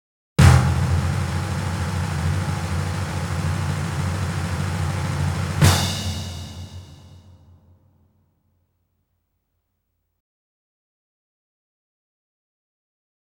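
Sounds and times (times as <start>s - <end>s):
grand prize victory drum: 0.4s - 7.3s.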